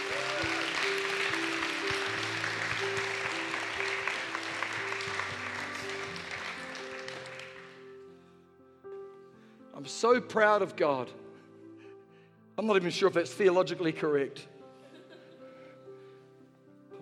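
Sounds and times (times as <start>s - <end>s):
crowd applause: 0.0s - 7.9s
sustained keyboard chords: 0.0s - 9.2s
speech: 9.9s - 11.2s, 12.6s - 14.5s.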